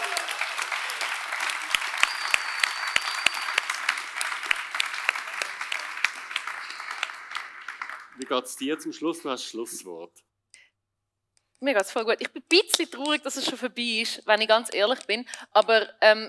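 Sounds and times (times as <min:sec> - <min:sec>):
audience applause: 0:00.0 - 0:09.0
speech: 0:08.2 - 0:10.3, 0:11.6 - 0:16.2.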